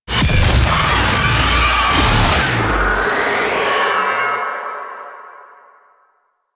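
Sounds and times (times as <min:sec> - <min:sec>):
tower crashing: 0:00.1 - 0:03.6.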